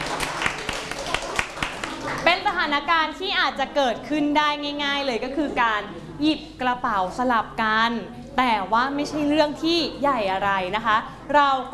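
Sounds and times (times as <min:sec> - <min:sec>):
small group of children clapping: 0:00.0 - 0:02.6
faint murmur: 0:00.0 - 0:11.7
speech: 0:02.6 - 0:11.7.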